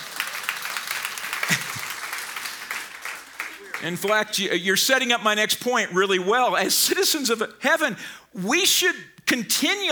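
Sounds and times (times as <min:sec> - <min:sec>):
audience clapping: 0:00.0 - 0:04.7
speech: 0:03.8 - 0:09.9.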